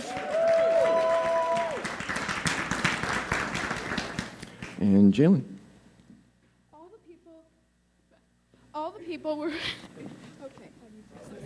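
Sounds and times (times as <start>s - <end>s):
audience applause: 0.0s - 4.8s
speech: 4.8s - 5.6s, 9.2s - 9.9s.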